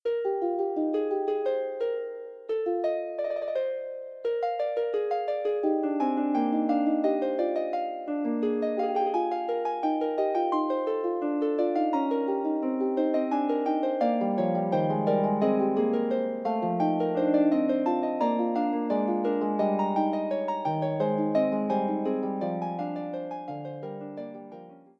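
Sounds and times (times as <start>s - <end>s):
harp playing a fugue: 0.0s - 24.9s.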